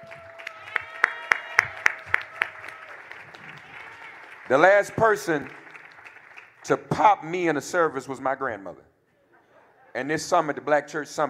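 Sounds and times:
audience clapping: 0:00.0 - 0:07.0
speech: 0:04.5 - 0:05.6, 0:06.7 - 0:08.9, 0:10.0 - 0:11.2.

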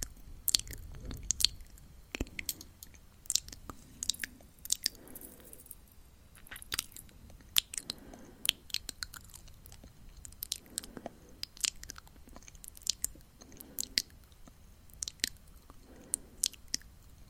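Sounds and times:
wet mouth clicks and smacks: 0:00.5 - 0:05.0, 0:06.4 - 0:15.8
gentle breath swells: 0:03.6 - 0:05.8, 0:07.7 - 0:08.8, 0:10.5 - 0:11.4, 0:13.3 - 0:14.2, 0:15.7 - 0:16.7.

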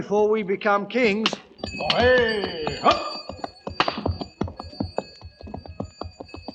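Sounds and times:
speech: 0:00.0 - 0:03.1
camel bells clanking: 0:01.0 - 0:06.5
high ringing tone: 0:01.4 - 0:06.5.

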